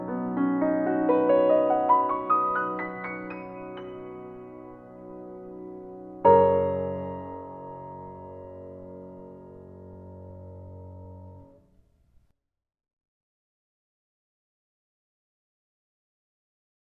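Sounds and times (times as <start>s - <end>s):
Steinway piano playing: 0.0s - 11.6s.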